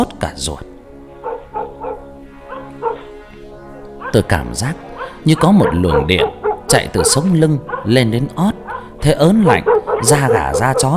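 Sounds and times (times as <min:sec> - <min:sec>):
speech: 0:00.0 - 0:00.7, 0:04.1 - 0:10.9
dog barking: 0:01.2 - 0:03.4, 0:04.0 - 0:04.3, 0:04.9 - 0:10.9.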